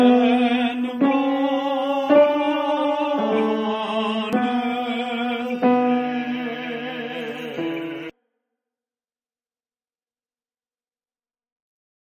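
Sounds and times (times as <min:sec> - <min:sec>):
tenor and bass voices singing: 0:00.0 - 0:08.1.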